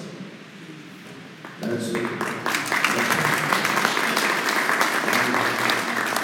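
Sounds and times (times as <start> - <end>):
town meeting audience applause: 1.4 - 6.2.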